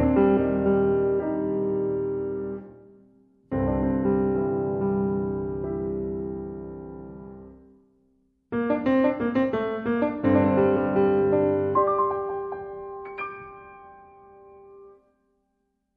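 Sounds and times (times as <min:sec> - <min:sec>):
concert pianist playing an allegretto mesto: 0:00.0 - 0:02.7, 0:03.5 - 0:07.6, 0:08.6 - 0:15.0.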